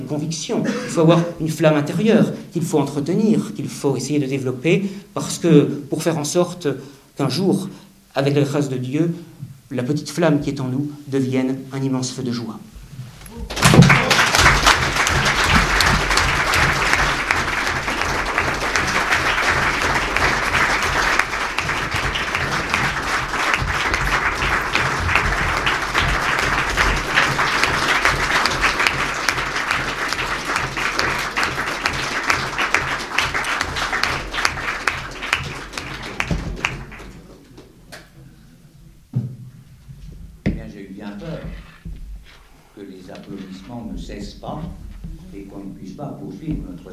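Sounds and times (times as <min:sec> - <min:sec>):
speech: 0:00.0 - 0:12.8
rhythmic clapping: 0:13.3 - 0:38.1
audience applause: 0:13.4 - 0:37.4.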